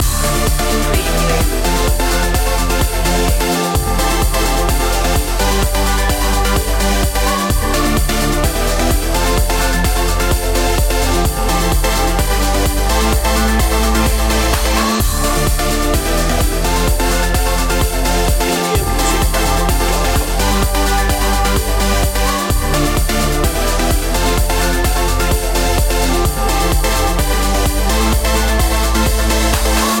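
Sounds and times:
trance music loop: 0.0s - 29.9s.

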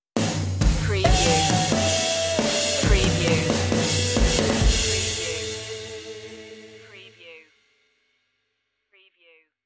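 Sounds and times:
short musical stinger: 1.1s - 6.9s.

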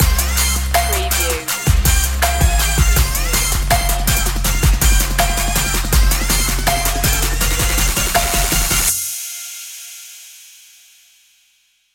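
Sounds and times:
trap beat: 0.0s - 9.2s.

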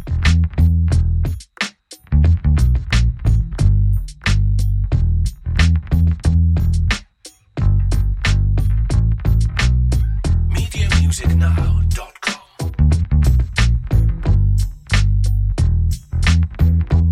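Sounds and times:
groovy funky bass: 0.0s - 7.0s, 7.6s - 17.1s
groovy funky drums: 0.0s - 17.1s.

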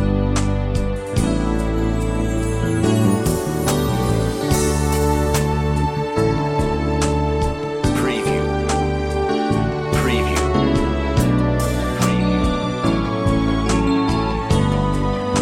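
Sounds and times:
romantic classical music: 0.0s - 15.3s.

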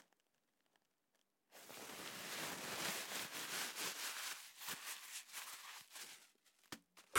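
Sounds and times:
paper towel use: 1.5s - 7.1s.

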